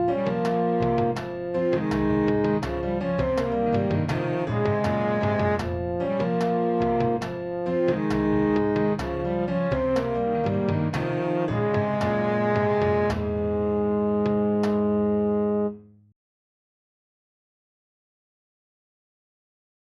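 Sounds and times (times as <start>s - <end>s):
Cuban style music piece: 0.0s - 15.9s.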